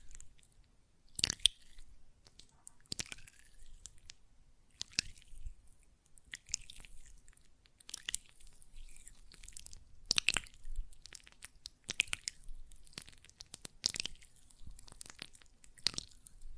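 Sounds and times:
hands working gel lotion, wet sticky squishes and smacks: 1.2 - 5.4, 7.6 - 16.4.

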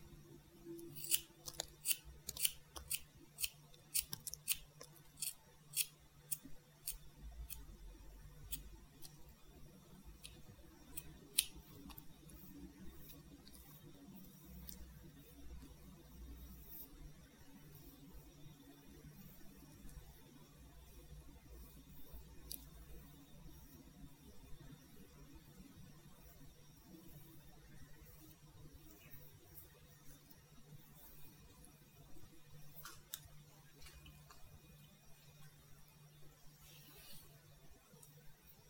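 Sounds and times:
low steady hum: 0.0 - 38.6
scissors snipping hair in a haircut: 0.8 - 7.7.

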